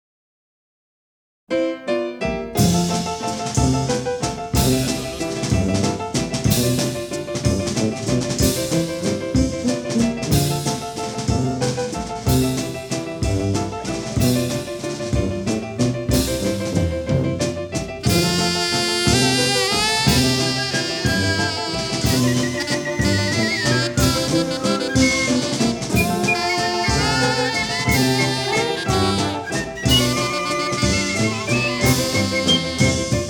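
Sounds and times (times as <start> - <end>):
jazz ensemble playing a waltz: 2.2 - 33.2.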